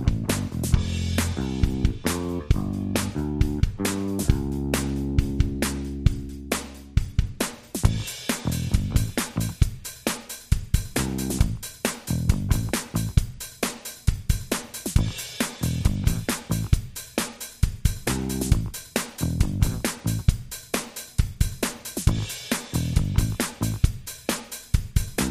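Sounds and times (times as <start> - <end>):
bass: 0.0 - 9.9, 10.7 - 13.4, 14.8 - 16.9, 17.8 - 20.5, 21.9 - 24.0, 25.0 - 25.3
drums: 0.0 - 25.3.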